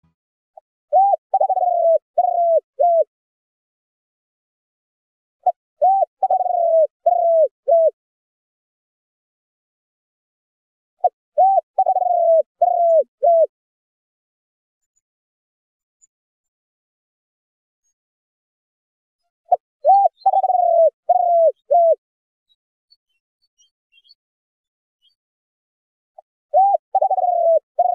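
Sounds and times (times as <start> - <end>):
spotted dove cooing: 0.9 - 3.1, 5.4 - 8.0, 11.0 - 13.5, 19.5 - 22.0, 26.5 - 27.9.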